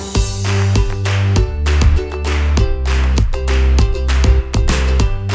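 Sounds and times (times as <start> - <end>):
backing track: 0.2 - 5.3.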